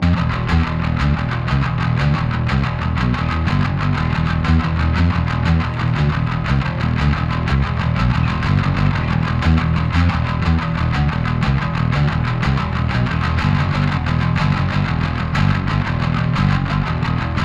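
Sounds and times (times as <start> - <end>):
bass: 0.0 - 17.4.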